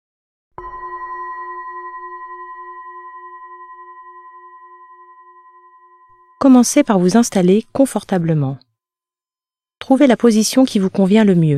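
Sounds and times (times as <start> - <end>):
gong marking start of exercise: 0.6 - 7.5
speech: 6.4 - 8.7, 9.9 - 11.5.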